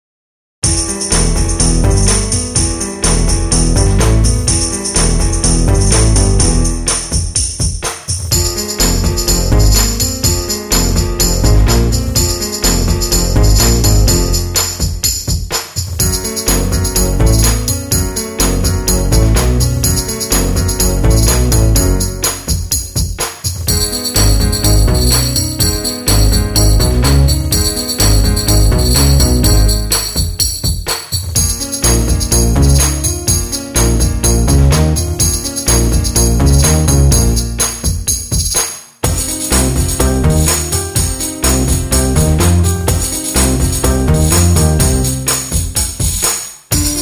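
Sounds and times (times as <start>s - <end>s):
tambourines: 0.6s - 6.1s, 6.9s - 47.0s.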